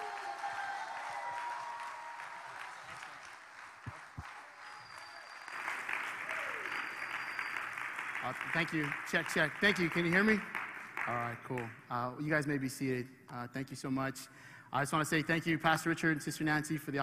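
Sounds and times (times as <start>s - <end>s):
church audience applauding to welcome a guest speaker: 0.0s - 11.7s
speech: 8.3s - 17.0s.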